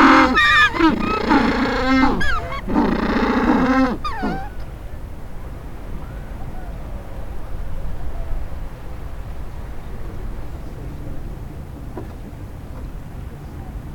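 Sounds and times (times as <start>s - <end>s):
penguin braying: 0.0s - 4.7s.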